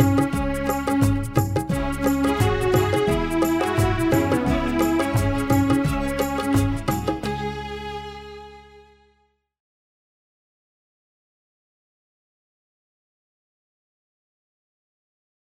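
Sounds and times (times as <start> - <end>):
instrumental music: 0.0 - 9.3.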